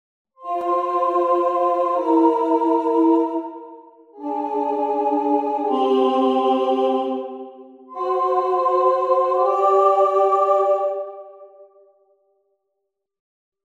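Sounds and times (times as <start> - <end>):
four-part vocal arrangement: 0.4 - 12.0.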